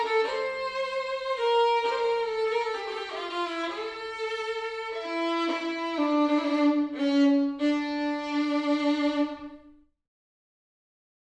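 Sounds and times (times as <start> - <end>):
solo violin: 0.0 - 9.9.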